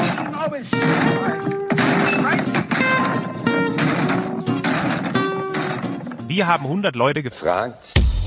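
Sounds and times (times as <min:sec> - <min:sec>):
table smashed to pieces on a game-show stage: 0:00.0 - 0:06.1
speech: 0:00.5 - 0:01.6, 0:06.4 - 0:08.1.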